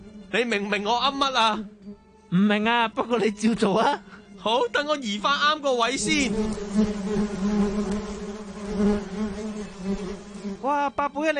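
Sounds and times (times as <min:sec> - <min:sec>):
bees buzzing: 0:00.0 - 0:02.7, 0:05.7 - 0:11.2
speech: 0:00.3 - 0:07.5, 0:10.6 - 0:11.3.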